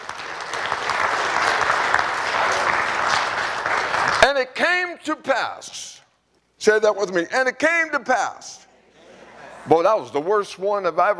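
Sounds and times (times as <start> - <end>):
audience applause: 0.0 - 4.4
speech: 4.2 - 6.0, 6.6 - 8.6, 9.6 - 11.1.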